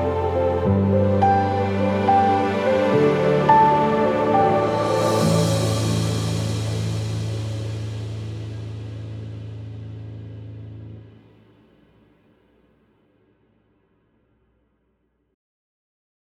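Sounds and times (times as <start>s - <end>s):
ambient piano: 0.0s - 12.6s.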